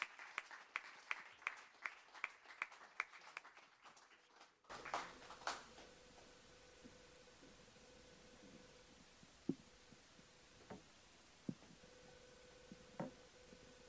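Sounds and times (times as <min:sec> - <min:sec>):
audience hand clapping: 0:00.0 - 0:06.3.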